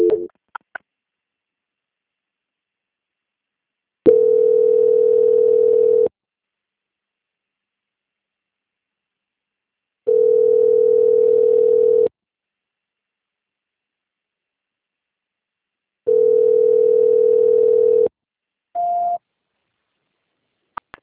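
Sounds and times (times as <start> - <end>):
telephone tones during a call transfer: 0.0 - 0.3, 4.1 - 6.1, 10.1 - 12.1, 16.1 - 18.1.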